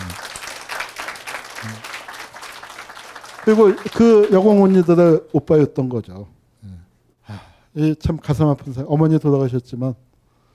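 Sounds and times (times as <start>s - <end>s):
audience applause: 0.0s - 5.3s
speech: 1.6s - 1.9s, 3.4s - 10.1s.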